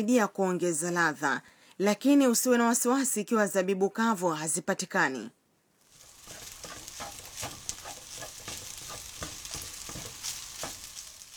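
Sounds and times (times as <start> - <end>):
speech: 0.0 - 5.4
ingredients sizzling as they are stir-fried in a pan: 5.8 - 11.3.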